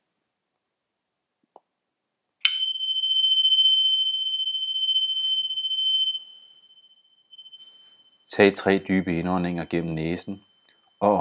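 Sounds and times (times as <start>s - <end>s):
meditation bell ringing: 2.4s - 11.1s
speech: 8.3s - 11.1s.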